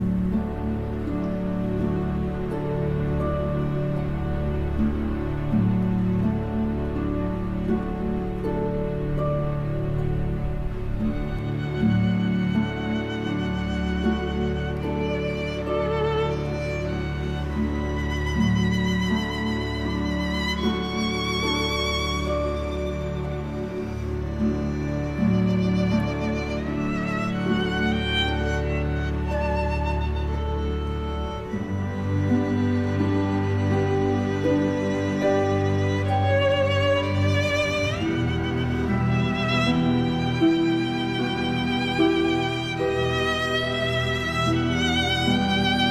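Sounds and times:
orchestra playing: 0.0 - 45.8
solo violin: 0.0 - 45.8.

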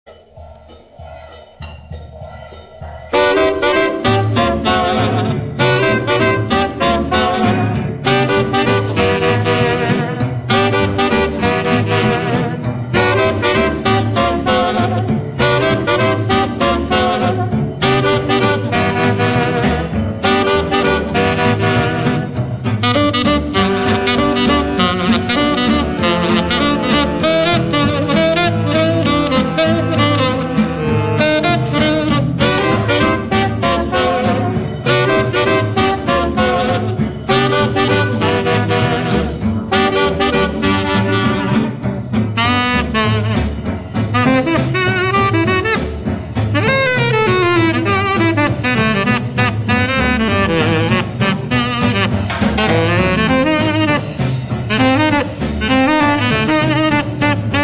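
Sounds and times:
saxophone trio playing: 3.1 - 57.6.

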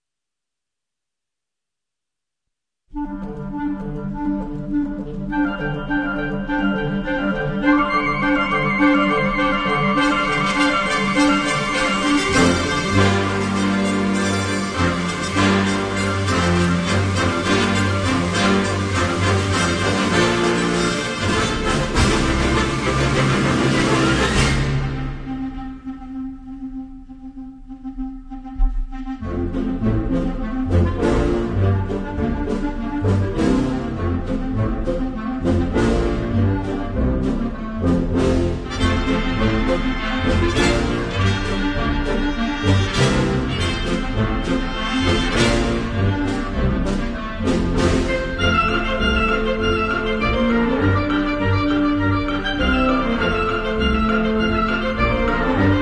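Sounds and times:
wind ensemble playing: 3.0 - 55.8.

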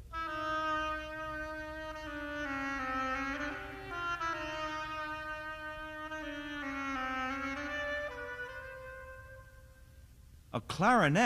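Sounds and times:
solo oboe melody: 0.0 - 10.0
speech: 10.6 - 11.2.

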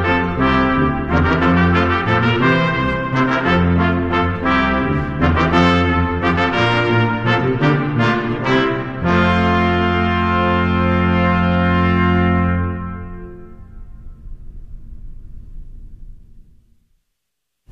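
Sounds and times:
brass quintet: 0.0 - 13.9.

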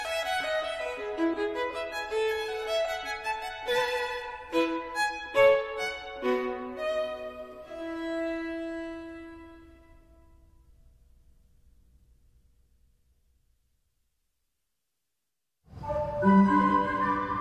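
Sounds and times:
violin: 0.0 - 10.2, 15.8 - 17.3.

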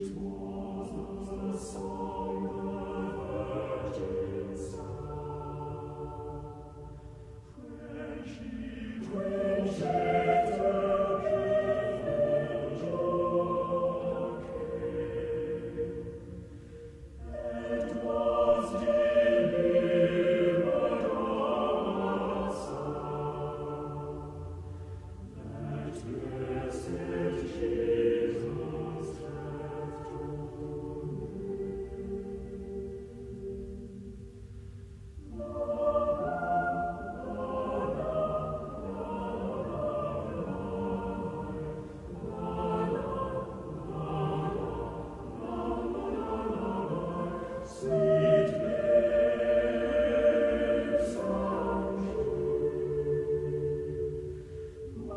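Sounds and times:
lute lullaby: 0.0 - 55.1.

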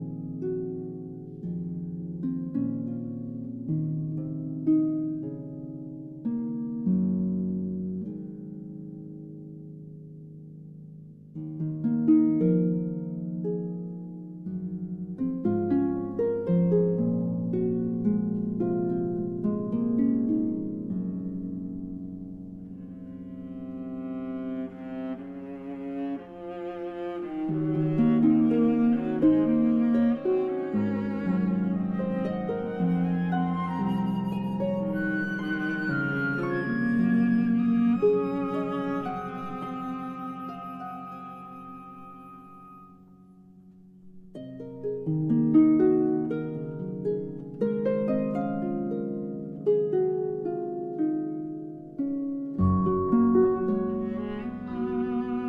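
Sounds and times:
harp concerto lullaby: 0.0 - 55.4.

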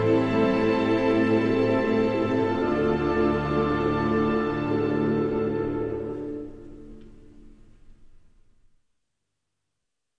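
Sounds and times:
symphony orchestra playing an orchestral arrangement: 0.0 - 7.0.

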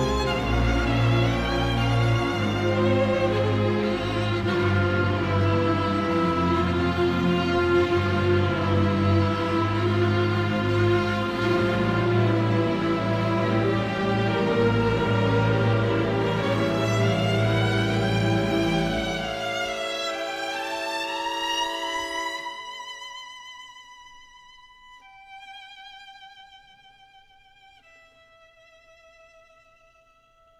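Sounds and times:
orchestra playing: 0.0 - 22.8
solo violin: 0.0 - 30.5.

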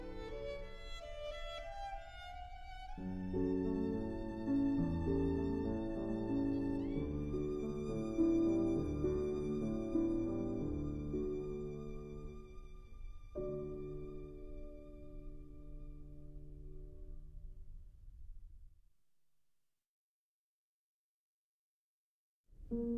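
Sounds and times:
violin: 0.0 - 16.9
piano: 0.0 - 18.7, 22.6 - 22.9.

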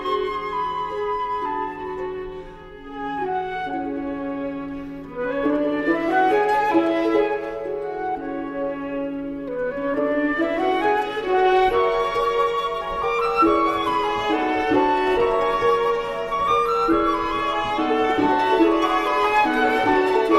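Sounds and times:
sonatina for flute viola and harp: 0.0 - 20.3.

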